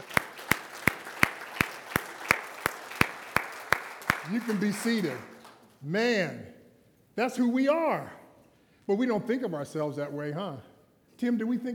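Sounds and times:
audience applauding: 0.0 - 5.6
speech: 4.3 - 6.6, 7.2 - 8.2, 8.9 - 11.7.

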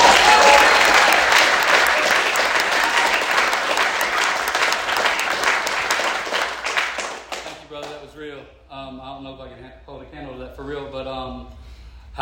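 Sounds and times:
audience applause: 0.0 - 8.0.

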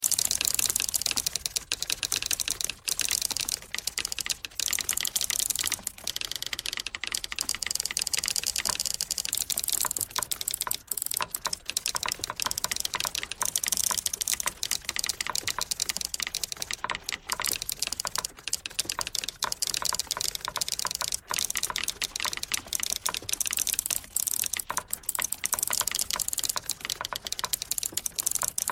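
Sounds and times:
pentatonic typewriter tones: 0.0 - 28.7.

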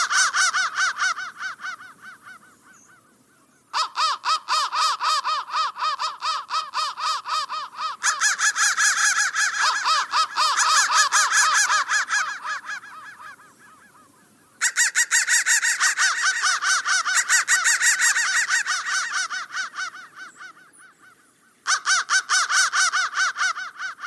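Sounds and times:
crows cawing: 0.0 - 24.0.

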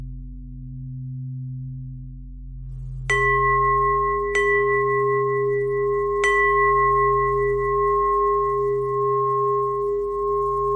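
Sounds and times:
bells ringing: 3.1 - 10.7.

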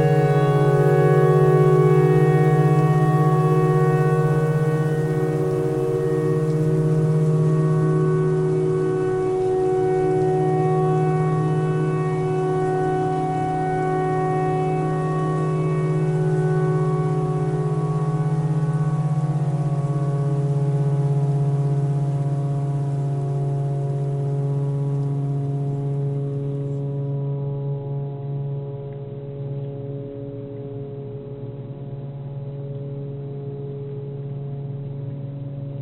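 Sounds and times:
clarinet notes: 0.0 - 20.3
tornado siren: 0.0 - 30.2.

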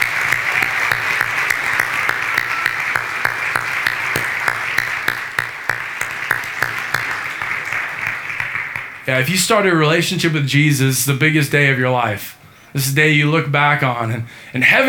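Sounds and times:
audience applause: 0.0 - 9.6
speech: 9.1 - 14.8.

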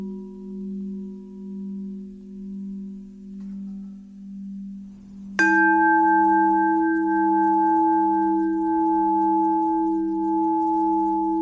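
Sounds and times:
long bell ringing: 5.4 - 11.3.

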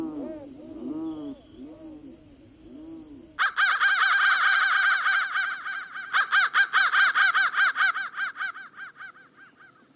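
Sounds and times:
crow caws electronically warped into pitch-bending tones: 3.4 - 9.9.

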